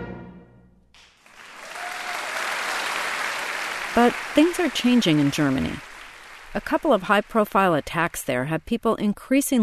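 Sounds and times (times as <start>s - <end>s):
concert audience applauding: 1.0s - 8.4s
speech: 4.0s - 5.9s, 6.5s - 9.5s.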